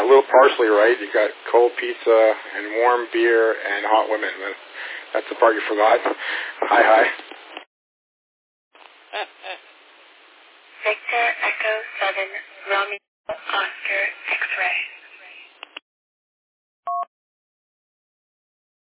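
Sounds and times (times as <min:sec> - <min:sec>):
thin band-limited radio repeater voice transmission: 0:00.0 - 0:07.2, 0:10.8 - 0:15.5
speech: 0:00.2 - 0:07.3, 0:09.1 - 0:09.6, 0:10.8 - 0:14.9
short two-tone beep of a radio repeater identifier: 0:16.9 - 0:17.1.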